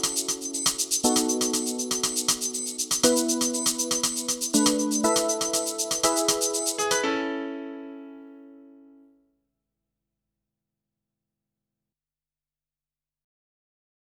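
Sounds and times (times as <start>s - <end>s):
montuno music: 0.0s - 9.1s.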